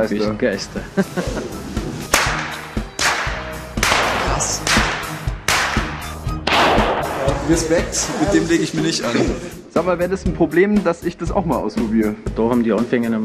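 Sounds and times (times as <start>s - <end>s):
speech: 0.0s - 1.8s, 7.5s - 13.2s
laughter: 0.0s - 2.0s, 7.4s - 9.7s
whip cracks: 2.1s - 7.5s.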